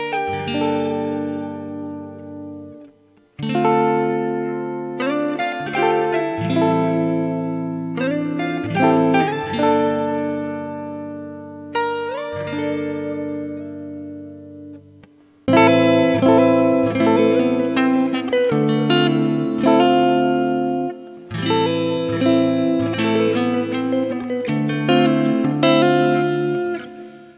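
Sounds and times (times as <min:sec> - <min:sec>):
guitars: 0:00.0 - 0:27.3.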